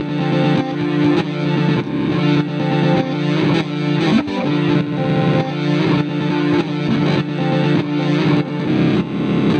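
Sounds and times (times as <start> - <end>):
guitar: 0.0 - 9.5.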